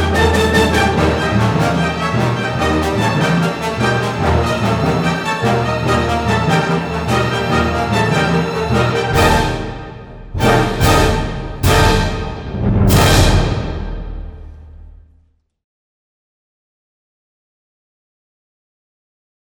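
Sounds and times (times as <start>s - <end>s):
fanfare: 0.1s - 6.6s, 7.4s - 15.0s.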